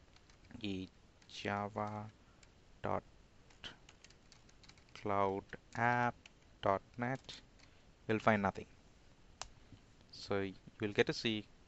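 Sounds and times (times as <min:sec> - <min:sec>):
speech: 0:00.6 - 0:02.2, 0:02.8 - 0:03.1, 0:05.0 - 0:07.5, 0:08.1 - 0:08.7, 0:10.2 - 0:11.5
computer keyboard key clicks typing a web address: 0:03.5 - 0:05.0.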